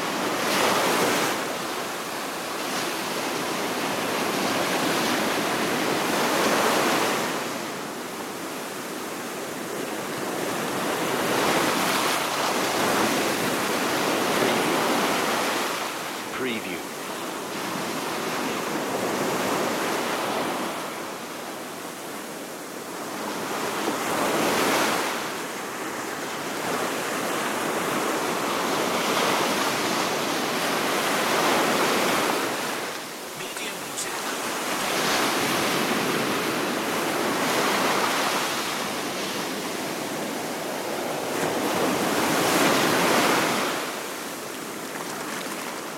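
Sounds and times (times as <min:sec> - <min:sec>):
ocean ambience: 0:00.0 - 0:45.9.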